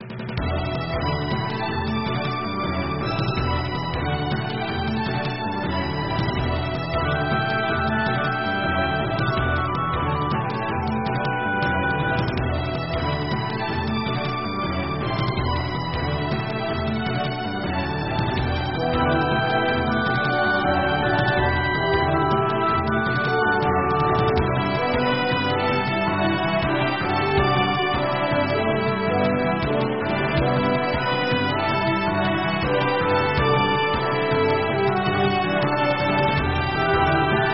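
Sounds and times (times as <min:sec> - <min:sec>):
battle music: 0:00.0 - 0:37.5.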